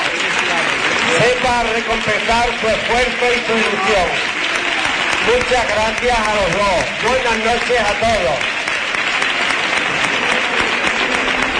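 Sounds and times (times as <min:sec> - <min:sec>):
audience applause and ovation: 0:00.0 - 0:11.5
speech: 0:01.5 - 0:04.3, 0:05.2 - 0:08.5.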